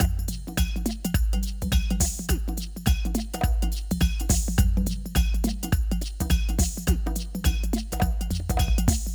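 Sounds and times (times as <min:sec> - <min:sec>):
jungle drums: 0:00.0 - 0:09.1.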